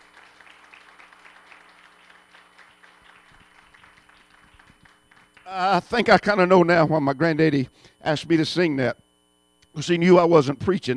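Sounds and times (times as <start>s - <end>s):
audience clapping hands: 0.0s - 5.9s
speech: 5.5s - 9.0s, 9.8s - 10.9s.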